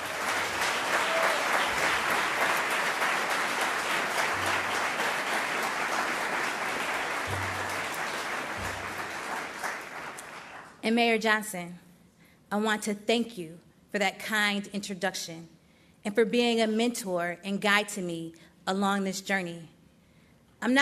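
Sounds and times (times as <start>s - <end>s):
audience applause for student choir: 0.0s - 10.7s
speech: 10.9s - 11.8s, 12.5s - 19.7s, 20.6s - 20.7s.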